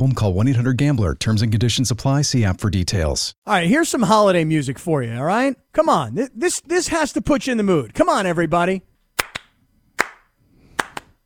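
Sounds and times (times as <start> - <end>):
speech: 0.0 - 8.9
two-and-one rhythm hand clap: 9.2 - 11.2.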